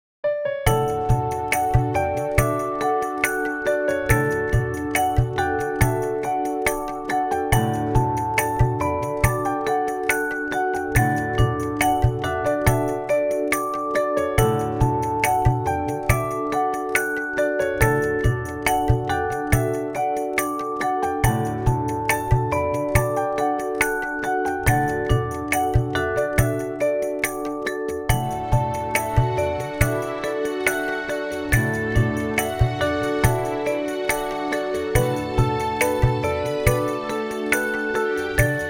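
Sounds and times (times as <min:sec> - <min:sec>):
Indian festive music: 0:00.7 - 0:38.6.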